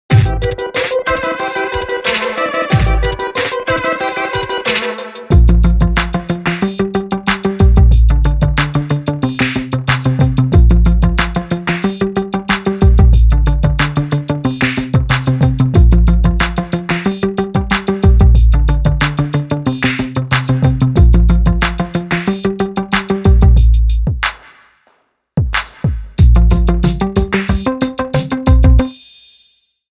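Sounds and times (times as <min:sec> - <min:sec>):
instrumental music: 0:00.1 - 0:24.4, 0:25.4 - 0:29.5.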